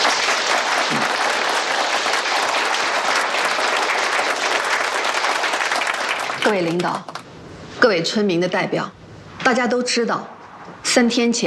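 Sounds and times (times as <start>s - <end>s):
audience applause: 0.0s - 7.2s
speech: 6.4s - 7.1s, 7.8s - 11.4s.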